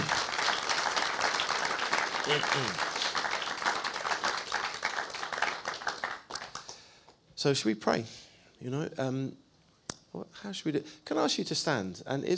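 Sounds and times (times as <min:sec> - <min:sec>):
crowd applause: 0:00.0 - 0:06.8
speech: 0:02.3 - 0:02.9, 0:07.4 - 0:09.4, 0:10.1 - 0:12.3.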